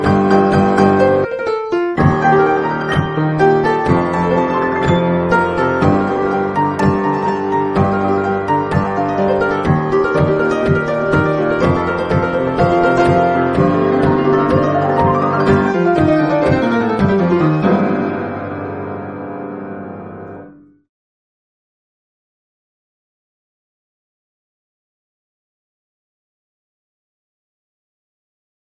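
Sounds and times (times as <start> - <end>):
piano: 0.0 - 20.9.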